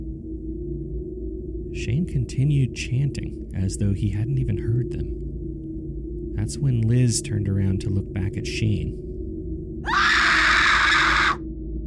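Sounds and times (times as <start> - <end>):
low hum: 0.0 - 10.5
speech: 1.7 - 5.2, 6.4 - 9.1
woman screaming: 9.8 - 11.4.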